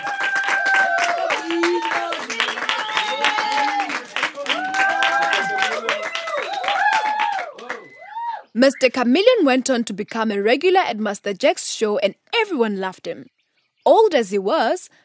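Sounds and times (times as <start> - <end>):
audience clapping in a theater: 0.0 - 8.3
people cheering: 0.0 - 8.5
whistling in a theater: 1.6 - 3.5, 5.8 - 9.0
speech: 8.6 - 15.0.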